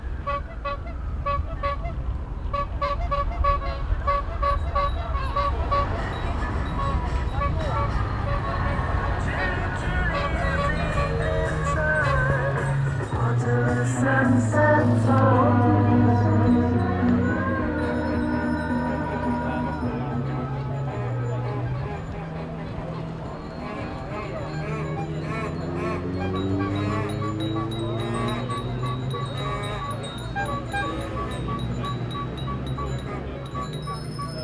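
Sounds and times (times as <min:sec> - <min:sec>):
street ride horns: 0:00.2 - 0:34.4
street ride bells: 0:04.6 - 0:08.3, 0:15.3 - 0:34.4.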